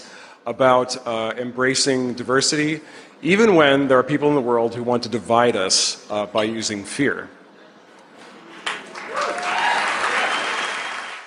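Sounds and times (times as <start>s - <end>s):
speech: 0.4s - 7.4s
audience applause: 8.6s - 11.2s.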